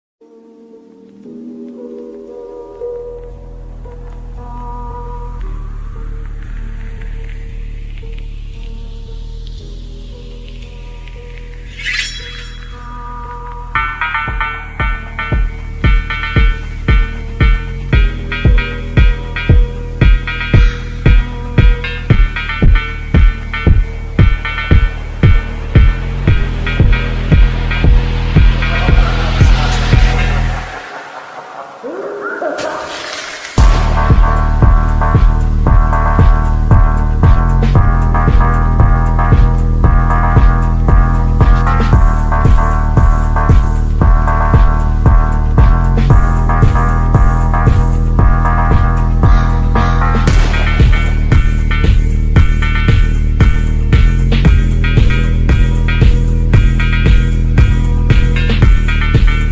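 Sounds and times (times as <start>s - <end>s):
boosted phonk bass: 13.8s - 32.4s, 33.6s - 59.4s.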